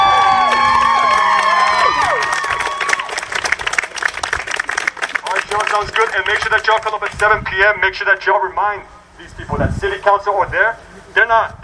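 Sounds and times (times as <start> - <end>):
applause: 0.0 - 7.2
speech: 5.8 - 11.6.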